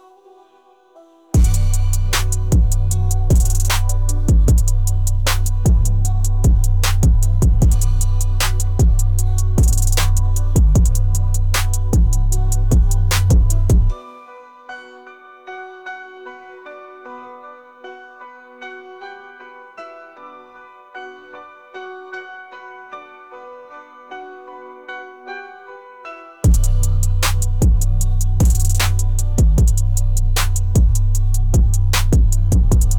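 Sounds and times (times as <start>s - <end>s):
bass music: 1.4s - 14.0s, 26.4s - 32.9s.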